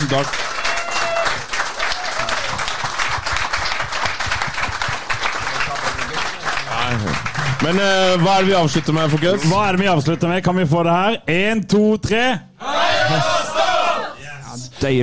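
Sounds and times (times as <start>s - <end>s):
speech: 0.0s - 0.6s, 6.9s - 12.5s, 13.1s - 13.4s, 14.8s - 15.0s
audience applause: 0.0s - 10.5s.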